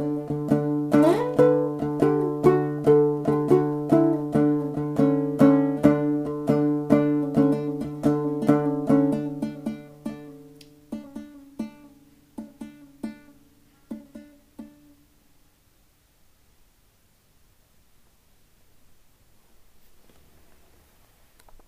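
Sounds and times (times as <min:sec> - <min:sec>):
dombra improvisation: 0:00.0 - 0:15.0.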